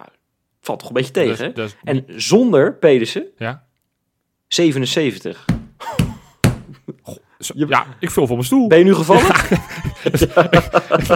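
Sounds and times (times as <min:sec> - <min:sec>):
speech: 0:00.0 - 0:03.7, 0:04.5 - 0:05.5, 0:07.1 - 0:11.1
hand hitting a table: 0:05.5 - 0:06.8
laughter: 0:09.1 - 0:11.1.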